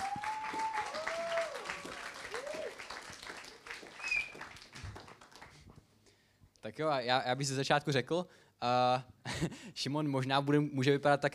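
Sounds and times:
audience applause: 0.0s - 5.6s
speech: 6.7s - 11.3s.

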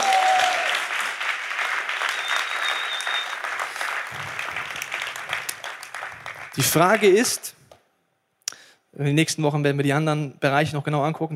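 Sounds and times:
audience applause: 0.0s - 7.4s
speech: 6.6s - 7.6s, 9.0s - 11.3s.

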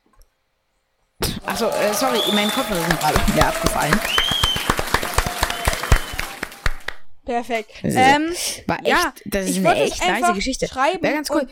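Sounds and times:
laughter: 1.4s - 4.1s
speech: 1.4s - 4.2s, 7.2s - 11.5s
applause: 1.4s - 7.0s.

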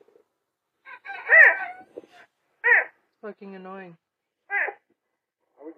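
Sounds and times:
serval cat calling: 0.9s - 2.9s, 4.5s - 4.9s
speech: 3.3s - 4.1s.

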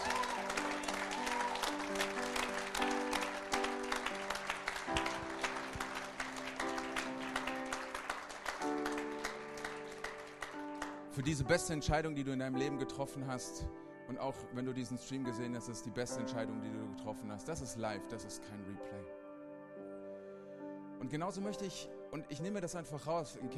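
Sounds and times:
audience applause: 0.0s - 11.1s
speech: 11.2s - 19.2s, 21.1s - 23.5s.

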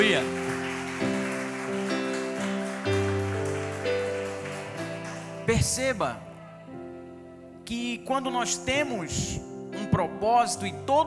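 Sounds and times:
speech: 0.0s - 0.4s, 5.5s - 6.3s, 7.7s - 11.0s
audience applauding: 0.0s - 6.6s.

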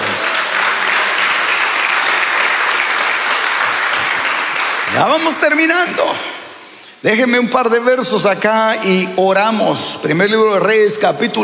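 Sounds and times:
audience applause: 0.0s - 5.6s
speech: 5.0s - 6.3s, 7.0s - 11.4s.

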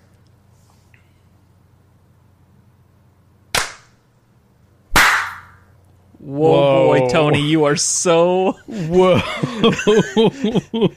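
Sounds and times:
faint low hum: 0.0s - 10.9s
sharp hand claps: 3.6s - 4.0s, 5.0s - 5.6s
speech: 6.2s - 10.9s
laughter: 6.4s - 10.9s.

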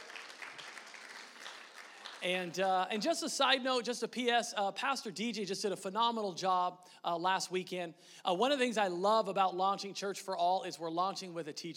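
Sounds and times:
audience clapping: 0.0s - 2.6s
speech: 2.2s - 11.7s.

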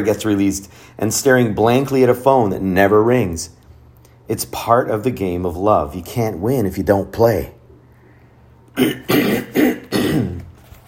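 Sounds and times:
speech: 0.0s - 3.6s, 4.3s - 7.6s, 8.8s - 9.7s
man clearing his throat: 8.8s - 10.5s.

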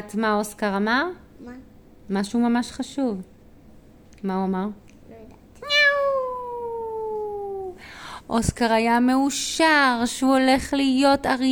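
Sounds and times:
speech: 0.0s - 3.3s, 4.2s - 4.8s, 8.3s - 11.5s
long drawn-out cat meow: 5.6s - 7.2s.

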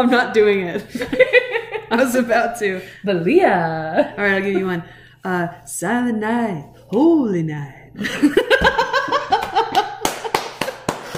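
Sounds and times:
speech: 0.0s - 8.9s
laughter: 0.8s - 2.1s, 8.0s - 11.1s
loud hand clap: 9.4s - 11.1s.

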